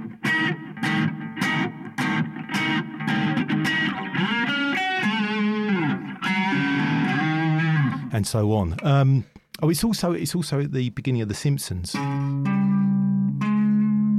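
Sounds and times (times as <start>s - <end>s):
distorted electric guitar tuned down a half step playing the tritone interval: 0.0s - 9.0s, 11.9s - 14.1s
speech: 8.2s - 12.5s.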